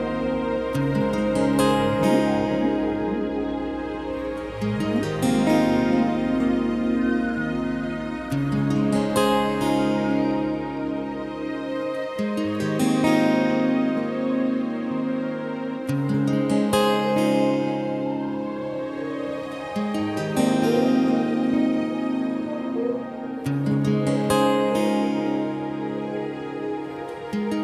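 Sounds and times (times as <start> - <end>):
guitar: 0.0 - 27.6
whale calls: 1.0 - 8.3, 20.3 - 24.8.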